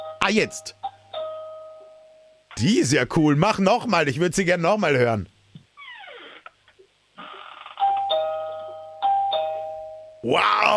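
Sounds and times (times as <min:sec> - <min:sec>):
speech: 0:00.2 - 0:00.8, 0:02.6 - 0:05.3, 0:10.3 - 0:10.7
two-tone ding-dong doorbell chiming: 0:01.2 - 0:02.2, 0:07.8 - 0:10.2.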